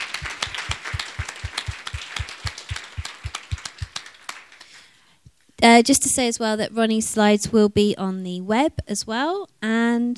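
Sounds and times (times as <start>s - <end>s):
audience applause: 0.0s - 4.8s
speech: 5.6s - 10.1s.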